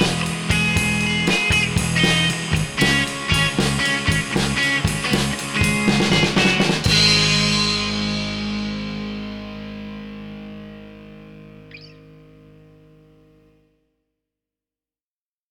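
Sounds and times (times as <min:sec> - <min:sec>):
drum beat: 0:00.0 - 0:08.5
bass: 0:00.0 - 0:13.8.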